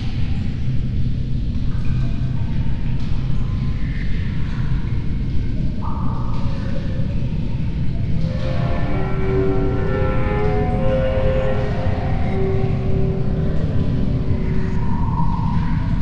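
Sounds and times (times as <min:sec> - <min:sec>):
cave ambience: 0:00.0 - 0:16.0.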